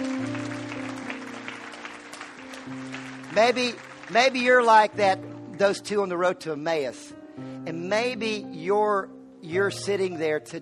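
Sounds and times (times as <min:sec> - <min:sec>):
audience clapping: 0:00.0 - 0:05.6
speech: 0:03.4 - 0:10.6.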